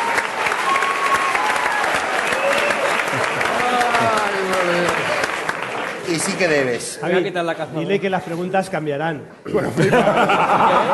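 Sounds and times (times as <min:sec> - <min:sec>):
audience applause: 0:00.0 - 0:07.0
laughter: 0:03.0 - 0:05.1, 0:09.5 - 0:10.9
speech: 0:06.2 - 0:10.9.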